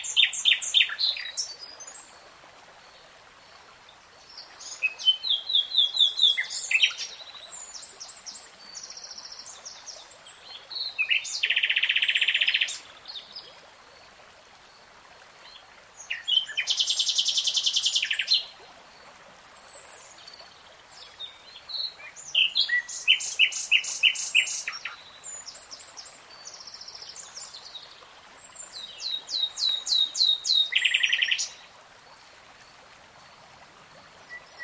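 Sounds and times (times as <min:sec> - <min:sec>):
nightingale song: 0:00.0 - 0:02.0, 0:04.3 - 0:13.5, 0:15.4 - 0:18.6, 0:19.8 - 0:31.7, 0:34.2 - 0:34.6.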